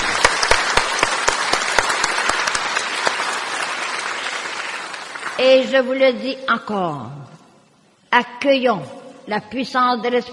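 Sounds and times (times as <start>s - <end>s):
audience applause: 0.0s - 5.4s
speech: 5.4s - 7.3s, 8.1s - 10.3s.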